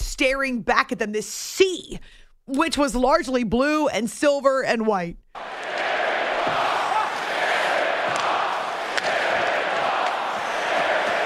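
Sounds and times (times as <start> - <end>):
speech: 0.2 - 5.5
football stadium crowd roaring: 5.4 - 11.2.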